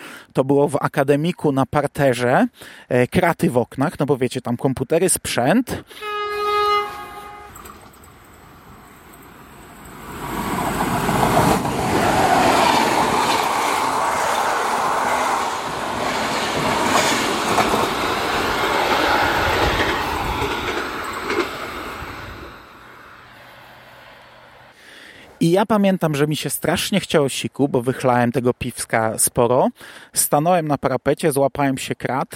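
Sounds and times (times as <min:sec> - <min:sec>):
speech: 0:00.4 - 0:06.2, 0:25.5 - 0:32.3
passing train: 0:06.0 - 0:25.4.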